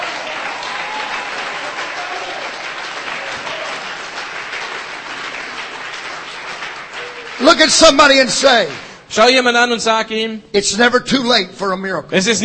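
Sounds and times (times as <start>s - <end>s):
audience clapping hands: 0.0s - 9.1s
speech: 7.4s - 12.4s.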